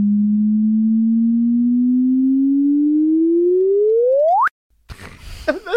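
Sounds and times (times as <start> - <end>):
demo chirp tone, rising slide-whistle sweep: 0.1 - 4.5
laughter: 4.9 - 5.7.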